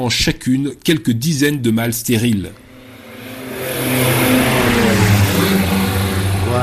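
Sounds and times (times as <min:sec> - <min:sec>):
speech: 0:00.0 - 0:02.6
small propeller airplane droning as it flies low: 0:02.6 - 0:06.6.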